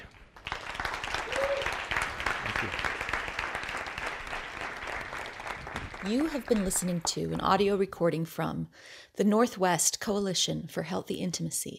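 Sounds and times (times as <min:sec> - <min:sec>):
audience applause: 0:00.0 - 0:07.0
speech: 0:02.6 - 0:02.8, 0:06.0 - 0:11.7.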